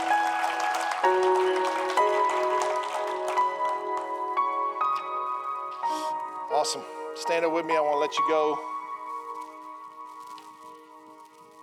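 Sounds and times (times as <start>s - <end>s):
audience clapping: 0.0s - 5.2s
speech: 6.7s - 8.7s.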